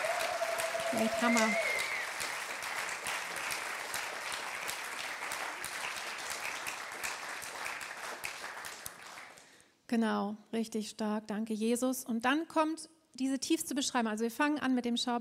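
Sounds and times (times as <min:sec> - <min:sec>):
audience applause: 0:00.0 - 0:09.4
speech: 0:00.9 - 0:01.7, 0:09.9 - 0:15.1.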